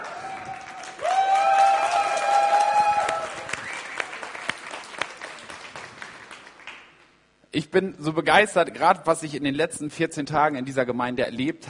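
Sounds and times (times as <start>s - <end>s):
audience applause: 0.0s - 7.0s
speech: 7.6s - 11.6s.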